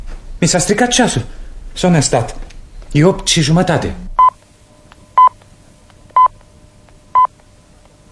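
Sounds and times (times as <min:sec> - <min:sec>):
faint low hum: 0:00.0 - 0:08.0
speech: 0:00.4 - 0:04.0
radio time signal beeps: 0:05.2 - 0:05.4.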